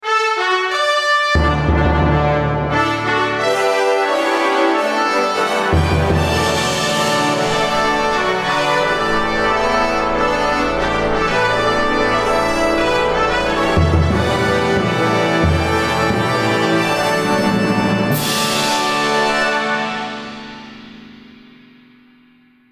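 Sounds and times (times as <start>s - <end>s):
royal fanfare: 0.0s - 21.7s.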